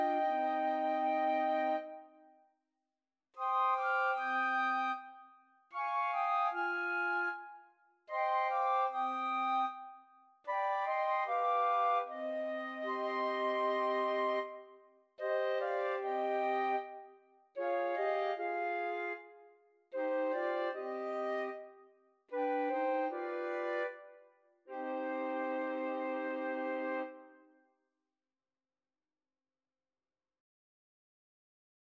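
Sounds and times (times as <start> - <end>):
flute quartet: 0.0 - 2.2, 3.4 - 5.2, 5.8 - 21.8, 22.4 - 27.4.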